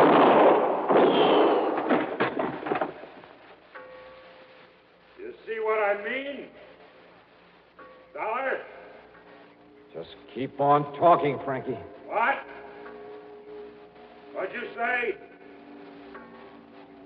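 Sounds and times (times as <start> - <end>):
gunshots in a radio drama shootout: 0.0 - 2.8
speech: 10.4 - 12.3, 14.5 - 15.3.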